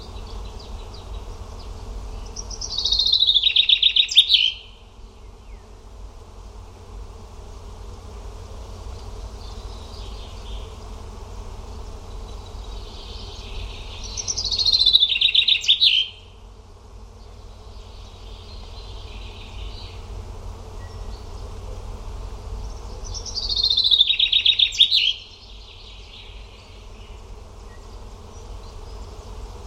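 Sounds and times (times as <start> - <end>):
steady low background hum: 0.0 - 29.6
bird trilled song: 2.3 - 4.8, 14.0 - 16.3, 23.1 - 25.4.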